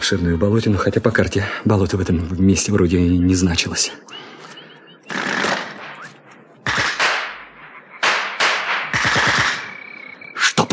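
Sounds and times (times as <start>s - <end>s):
speech: 0.1s - 4.3s
automatic gunfire at the edge of a marsh: 5.1s - 9.8s.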